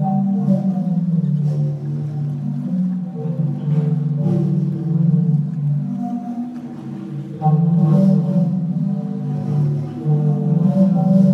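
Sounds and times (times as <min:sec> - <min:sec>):
Sea Organ in Zadar, Croatia with breathy pipe tones: 0:00.0 - 0:11.3.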